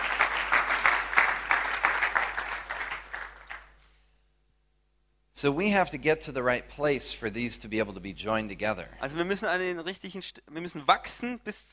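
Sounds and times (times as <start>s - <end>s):
audience applause: 0.0s - 3.8s
speech: 5.4s - 11.7s.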